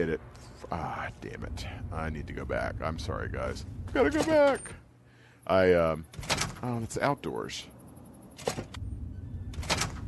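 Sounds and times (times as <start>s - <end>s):
speech: 0.0s - 4.8s, 5.4s - 7.8s, 8.4s - 8.8s
door opening to go outdoors: 3.9s - 4.8s, 6.1s - 6.7s, 8.3s - 10.0s.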